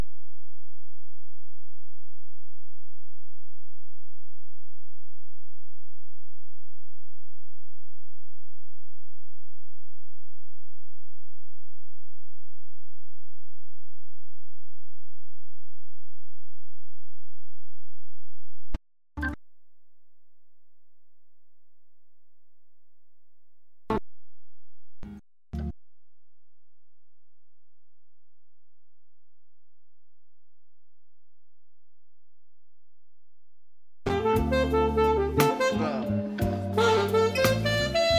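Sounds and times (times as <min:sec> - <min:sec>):
instrumental music: 0:34.1 - 0:38.1.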